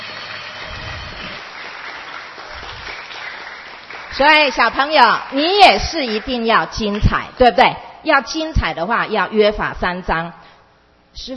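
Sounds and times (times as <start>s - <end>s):
audience applause: 0.0s - 6.4s
speech: 4.2s - 10.4s, 11.2s - 11.3s.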